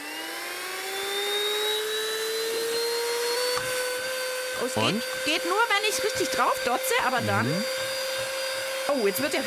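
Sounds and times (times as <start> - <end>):
vacuum cleaner running with loud motor whine: 0.0 - 9.4
speech: 4.6 - 7.9, 8.9 - 9.4.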